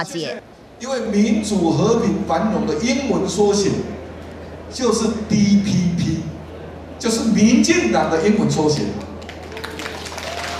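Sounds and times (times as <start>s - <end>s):
speech: 0.0s - 4.0s, 4.7s - 6.1s, 7.0s - 9.0s
rally crowd applause: 9.2s - 10.5s.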